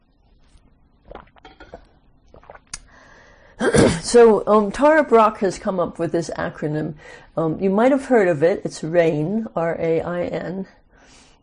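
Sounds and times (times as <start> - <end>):
person sipping coffee: 1.1 - 2.9
speech: 4.0 - 10.8.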